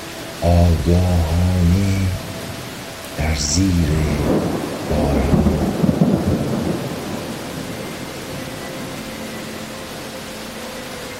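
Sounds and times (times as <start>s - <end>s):
steady rain pouring: 0.0s - 11.1s
speech: 0.4s - 2.2s, 3.2s - 5.8s
deep rolling thunder: 4.2s - 7.8s.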